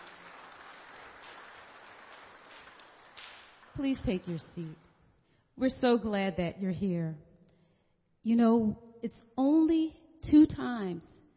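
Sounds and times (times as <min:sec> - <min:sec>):
audience hand clapping: 0:00.0 - 0:05.0
speech: 0:03.8 - 0:04.9, 0:05.6 - 0:07.3, 0:08.2 - 0:11.2.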